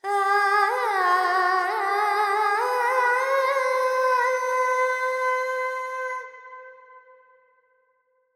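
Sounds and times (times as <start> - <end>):
Carnatic female alap in raga Panthuvarali with reverb: 0.0 - 6.3.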